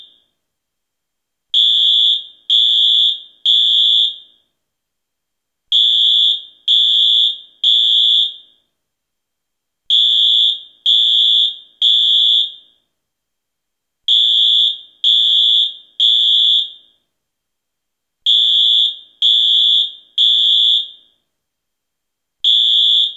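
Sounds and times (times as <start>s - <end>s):
fire alarm: 0.0s - 0.3s, 1.6s - 4.5s, 5.7s - 8.7s, 9.9s - 12.9s, 14.1s - 17.1s, 18.2s - 21.3s, 22.4s - 23.1s.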